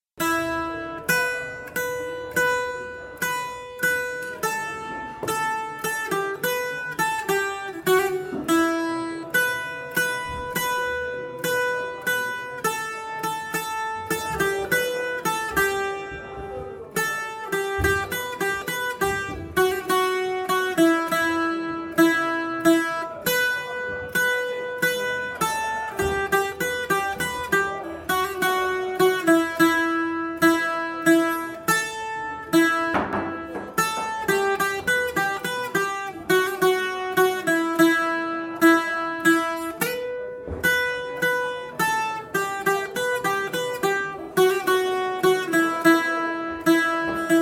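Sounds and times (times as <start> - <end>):
tambura playing: 0.2 - 47.3.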